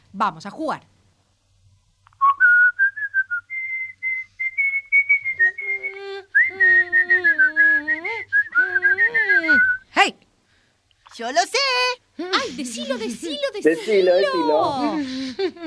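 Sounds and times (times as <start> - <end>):
speech: 0.1 - 1.0, 13.2 - 15.4
person whistling a song melody: 2.2 - 9.8
laughter: 12.3 - 15.6.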